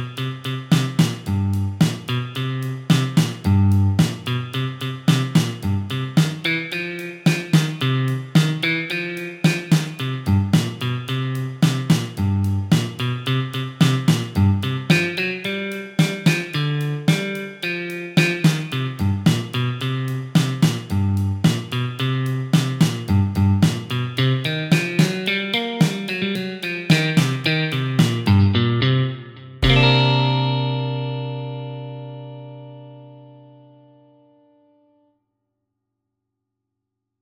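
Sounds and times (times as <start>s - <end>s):
rock and roll groove: 0.0s - 28.7s, 29.6s - 30.5s.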